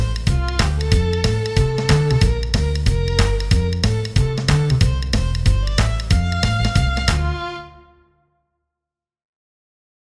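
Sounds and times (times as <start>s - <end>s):
jazz violin piece in F major: 0.0s - 8.2s.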